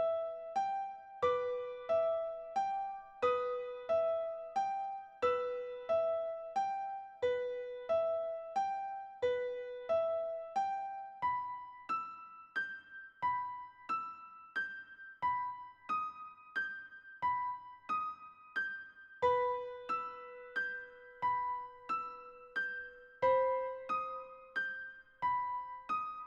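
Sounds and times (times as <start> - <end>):
computer-generated solo piano piece: 0.0 - 26.2.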